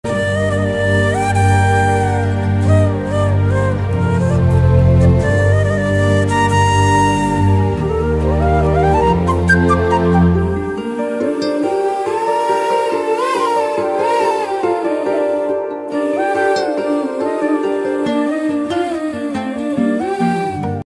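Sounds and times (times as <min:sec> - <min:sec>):
flute background music ringtone: 0:00.1 - 0:20.8.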